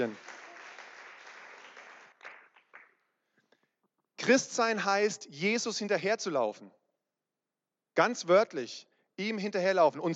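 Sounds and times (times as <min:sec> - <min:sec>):
speech: 0:00.0 - 0:00.2, 0:04.2 - 0:06.8, 0:08.0 - 0:10.1
crowd applauding: 0:00.0 - 0:03.0.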